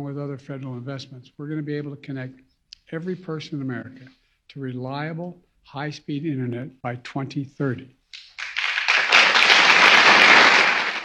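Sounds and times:
speech: 0:00.0 - 0:08.3
audience clapping: 0:08.1 - 0:11.0.

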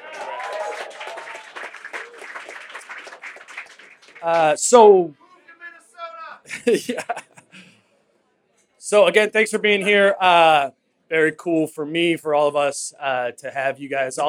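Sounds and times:
audience applause: 0:00.0 - 0:05.0
speech: 0:04.2 - 0:05.2, 0:06.6 - 0:07.2, 0:08.9 - 0:14.2
laughter: 0:06.4 - 0:07.7.

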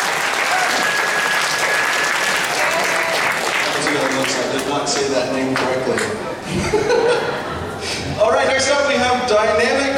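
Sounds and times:
audience applause: 0:00.0 - 0:06.2
speech: 0:04.7 - 0:09.9
laughter: 0:06.4 - 0:08.2.

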